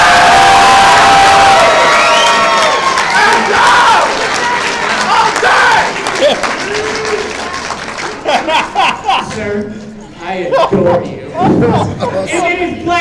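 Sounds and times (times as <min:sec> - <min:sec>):
large audience clapping and cheering: 0:00.0 - 0:09.5
laughter: 0:05.9 - 0:06.8, 0:07.9 - 0:09.6, 0:10.4 - 0:12.5.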